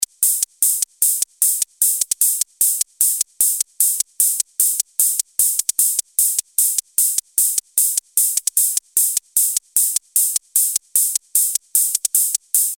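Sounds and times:
ringing hi-hats: 0.0s - 12.7s.

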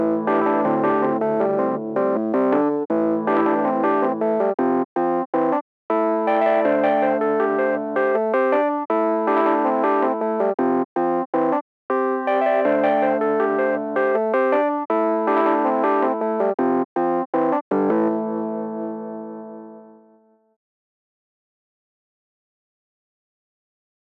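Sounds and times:
electric piano: 0.2s - 4.6s, 5.5s - 10.6s, 11.4s - 20.0s.

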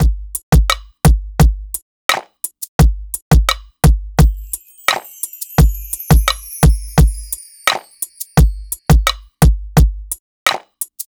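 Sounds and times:
cinematic funk drums: 0.0s - 11.1s.

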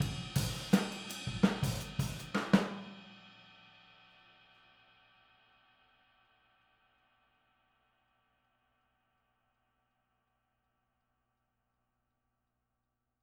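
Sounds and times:
boogaloo outro drums recorded overhead: 0.0s - 3.1s.

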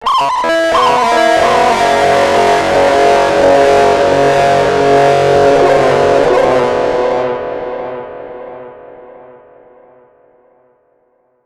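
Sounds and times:
distortion effect: 0.0s - 10.6s.

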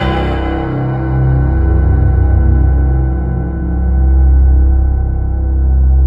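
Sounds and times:
synth line: 0.0s - 5.9s.

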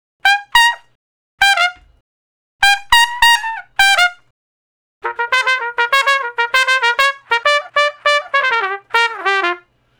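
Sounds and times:
trumpet with straight mute playing G: 0.2s - 2.0s, 2.6s - 4.3s, 5.0s - 9.8s.

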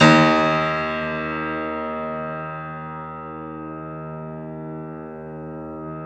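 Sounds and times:
Bösendorfer piano: 0.0s - 6.0s.

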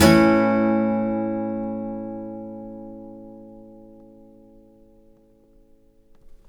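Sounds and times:
blues guitar: 0.0s - 5.0s.

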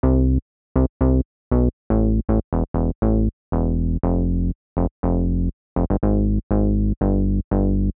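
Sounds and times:
bass: 0.0s - 7.9s.

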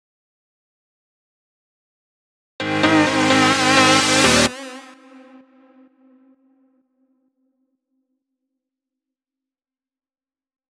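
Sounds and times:
instrumental synth fill in F minor: 2.6s - 6.3s.

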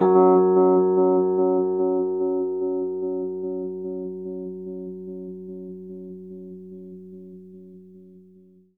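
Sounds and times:
Rhodes electric piano octave F sharp: 0.0s - 7.8s.

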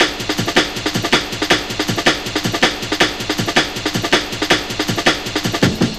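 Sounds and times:
drum loop: 0.0s - 5.9s.

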